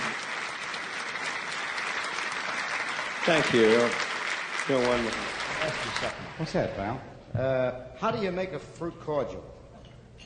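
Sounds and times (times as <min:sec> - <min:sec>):
audience applause for a lounge performer: 0:00.0 - 0:06.8
speech: 0:03.2 - 0:04.1, 0:04.7 - 0:09.6.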